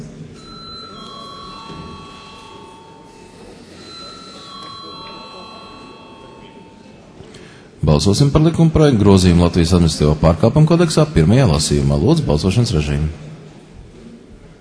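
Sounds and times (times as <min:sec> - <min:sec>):
low murmur: 0:00.0 - 0:14.5
bell rung in a parliamentary chamber before a vote: 0:00.4 - 0:07.1
speech: 0:07.8 - 0:13.3.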